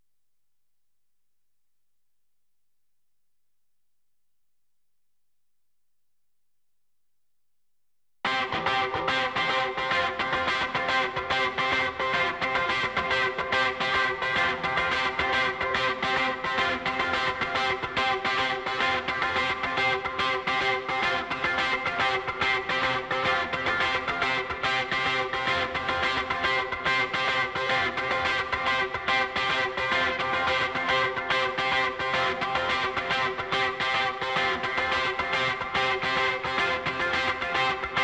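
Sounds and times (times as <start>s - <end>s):
guitar: 8.2s - 38.0s.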